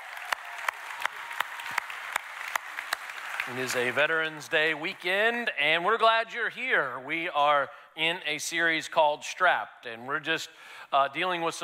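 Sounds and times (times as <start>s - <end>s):
crowd applauding: 0.0s - 5.1s
speech: 3.5s - 11.6s.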